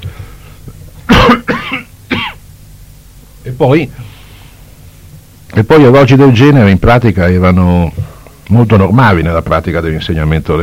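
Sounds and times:
low steady hum: 0.0 - 10.6
harsh throaty coughs from a teacher with bronchitis: 1.1 - 2.4
speech: 3.6 - 4.1, 5.6 - 10.6.

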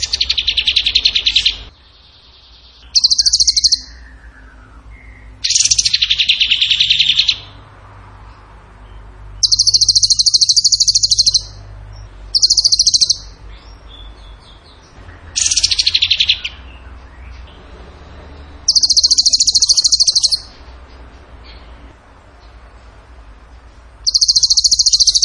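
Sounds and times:
bird trilling song: 0.0 - 23.0, 24.0 - 25.2.

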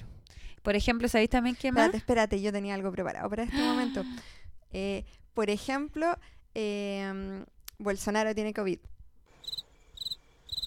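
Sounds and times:
speech: 0.6 - 8.9
cricket chirping sound effect: 9.3 - 10.6.

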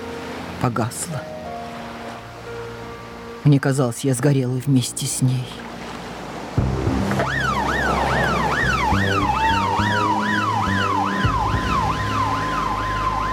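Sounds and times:
speech: 0.6 - 1.4, 3.4 - 5.7
ambulance siren passing by: 7.0 - 13.3.

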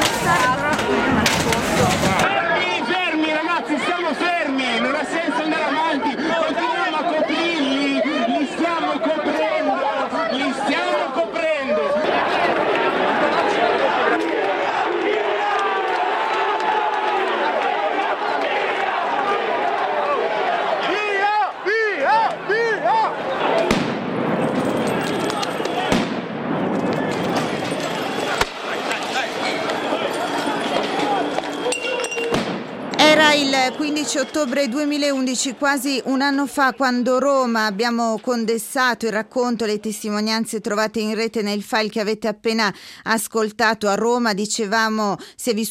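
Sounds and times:
street riot crowd shouting and yelling: 0.0 - 37.7
firecracker bangs: 23.6 - 33.9
clinking bursts: 24.3 - 26.0, 26.7 - 34.5
speech: 34.2 - 45.6.

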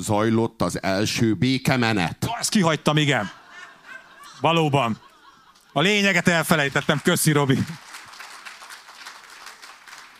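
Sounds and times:
speech: 0.0 - 3.4, 4.4 - 5.1, 5.8 - 7.8
laughter: 3.0 - 7.8
audience applause: 6.5 - 10.1.

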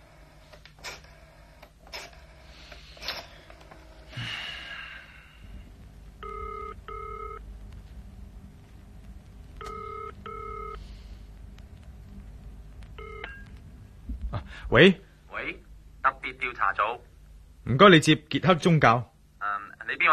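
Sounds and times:
low hum: 0.0 - 20.1
telephone keypad tones dialing a number to call the police: 6.2 - 7.4, 9.6 - 10.8, 13.0 - 13.5
speech: 14.7 - 15.0, 16.4 - 17.1, 17.7 - 19.1.

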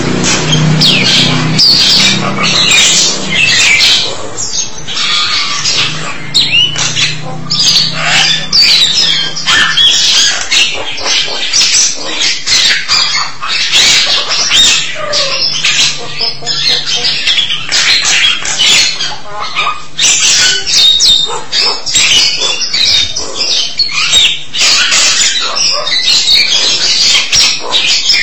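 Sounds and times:
low droning hum: 0.0 - 20.6
starling song: 0.0 - 28.0.

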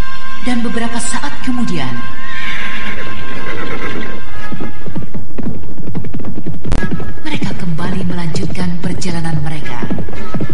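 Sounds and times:
speech: 0.4 - 2.2, 4.6 - 10.5
riding horse whinnying in a quiet forest: 2.2 - 5.1.

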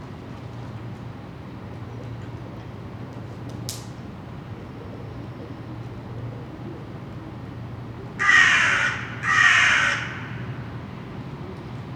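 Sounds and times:
crows cawing: 8.2 - 10.7.

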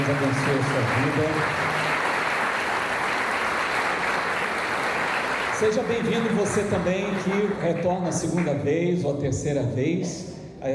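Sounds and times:
speech: 0.0 - 1.8, 5.6 - 10.7
audience applause for guests: 0.0 - 8.5.

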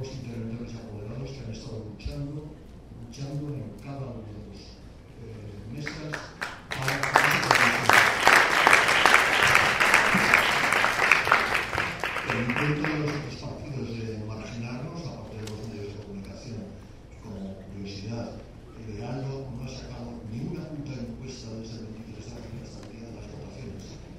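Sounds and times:
applause at a political assembly in Zaragoza: 5.9 - 13.3.

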